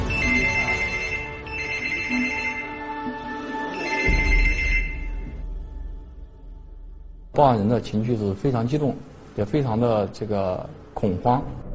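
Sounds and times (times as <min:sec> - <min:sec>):
telephone ringing: 0:00.1 - 0:05.4
speech: 0:07.4 - 0:11.7.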